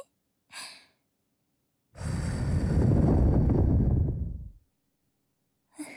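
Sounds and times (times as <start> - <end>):
blowing into the right ear: 2.0 - 4.6.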